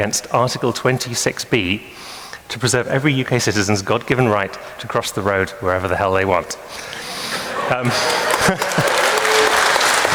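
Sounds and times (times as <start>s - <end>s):
speech: 0.0s - 7.0s, 7.7s - 9.0s
laughter: 6.9s - 10.1s
audience applause: 7.8s - 10.1s.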